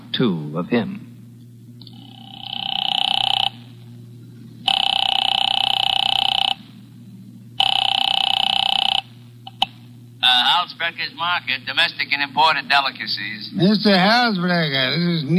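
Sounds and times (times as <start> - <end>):
low constant hum: 0.0 - 15.3
speech: 0.2 - 1.0, 10.9 - 15.3
telephone ringback tone after dialing: 1.9 - 3.9, 4.6 - 6.8, 7.6 - 9.6.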